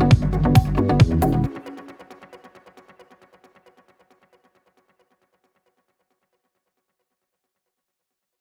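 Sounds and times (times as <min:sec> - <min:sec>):
techno music: 0:00.0 - 0:03.6.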